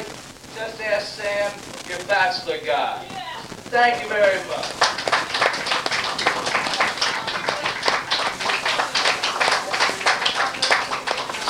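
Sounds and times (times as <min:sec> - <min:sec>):
speech: 0:00.6 - 0:05.0
audience applause for a performer at a live show: 0:03.8 - 0:11.4.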